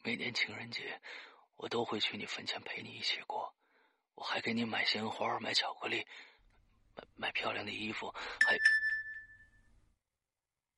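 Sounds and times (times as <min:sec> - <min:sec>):
speech: 0:00.1 - 0:03.6, 0:04.2 - 0:06.3, 0:07.0 - 0:08.7
mobile phone notification ringing: 0:08.4 - 0:09.5.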